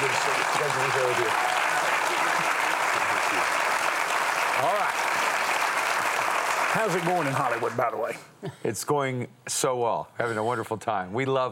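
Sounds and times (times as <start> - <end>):
television talk show studio audience applauding a guest: 0.0 - 8.2
speech: 0.8 - 1.5, 6.8 - 11.5.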